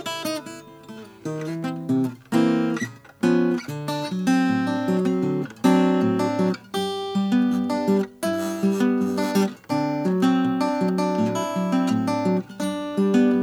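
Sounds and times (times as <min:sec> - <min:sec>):
Oscar Schmidt Stella mahogany guitar: 0:00.0 - 0:13.4.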